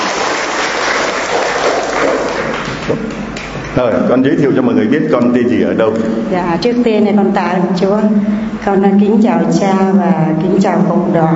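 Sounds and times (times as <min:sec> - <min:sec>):
congregation applauding a woman invited to share: 0:00.0 - 0:03.6
speech: 0:03.8 - 0:11.3.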